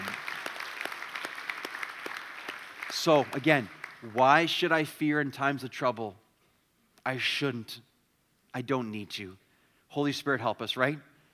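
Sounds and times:
audience applause: 0.0s - 4.2s
speech: 3.0s - 6.2s, 7.1s - 7.9s, 8.5s - 11.1s.

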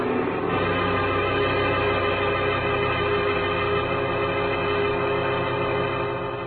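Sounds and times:
powerful car motor roaring away: 0.0s - 6.4s.

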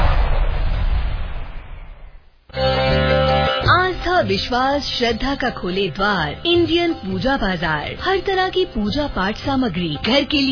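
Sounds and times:
firecrackers exploding in a Diwali firecracker shop advert: 0.0s - 2.5s
music in a Diwali firecracker shop advert: 2.5s - 10.4s
speech: 4.2s - 10.4s.

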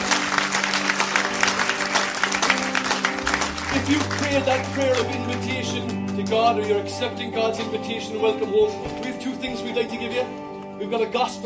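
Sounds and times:
audience applause: 0.0s - 6.8s
speech: 3.9s - 11.4s.

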